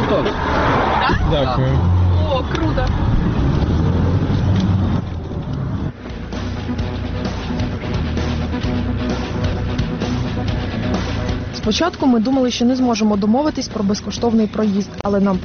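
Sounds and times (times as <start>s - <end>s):
taxi engine drone: 0.0s - 12.0s
taxi road rumble inside a moving car on highway: 0.0s - 15.4s
speech: 0.1s - 3.8s, 11.6s - 15.4s.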